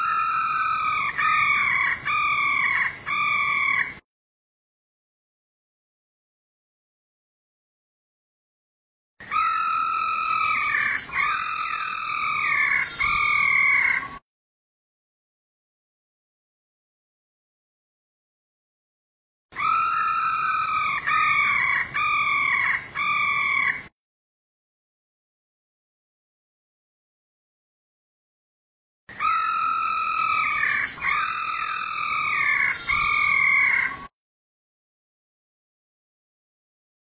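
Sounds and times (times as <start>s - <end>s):
female laughingthrush calling: 0.0s - 4.0s, 9.3s - 14.2s, 19.6s - 23.9s, 29.1s - 34.1s.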